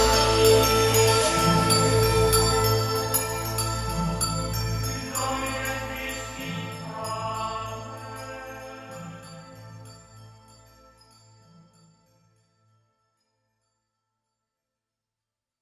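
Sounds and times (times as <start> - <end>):
8D bass-boosted music: 0.0 - 11.1.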